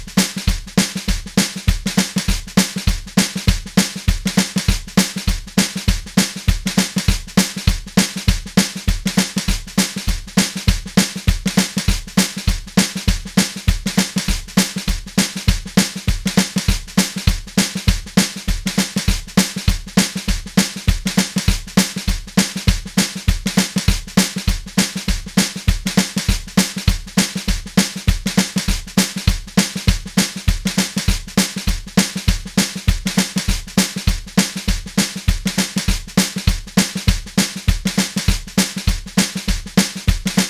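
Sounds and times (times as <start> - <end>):
drums playing train shuffle beat: 0.0 - 40.4.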